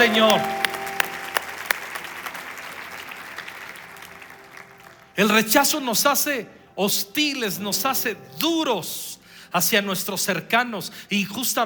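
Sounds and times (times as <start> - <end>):
speech: 0.0 - 0.6, 5.2 - 11.6
audience applauding: 0.0 - 5.4.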